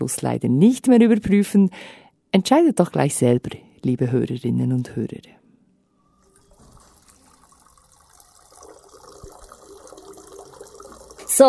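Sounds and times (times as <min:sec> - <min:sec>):
speech: 0:00.0 - 0:05.4
water running in a urinal in the Swiss Federal Parliament building: 0:06.2 - 0:11.4.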